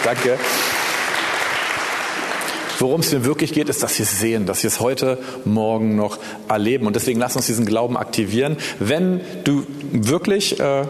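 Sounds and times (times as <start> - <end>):
speech: 0.0 - 0.8, 2.8 - 10.8
audience applause: 0.0 - 3.0.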